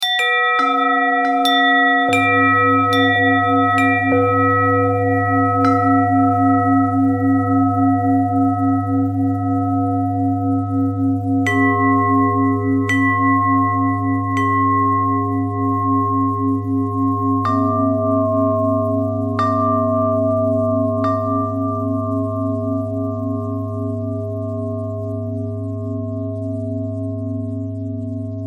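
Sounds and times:
bell: 0.0s - 28.4s.

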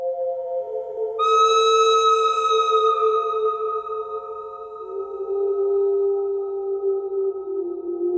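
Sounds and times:
pentatonic bird theme melody: 0.0s - 8.0s
bird cry: 1.2s - 6.4s.

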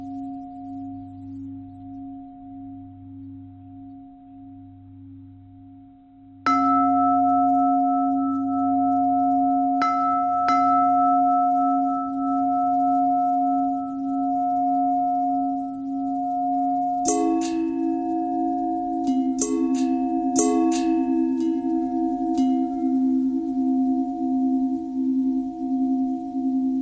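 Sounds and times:
long pentatonic bell melody: 6.5s - 26.8s.

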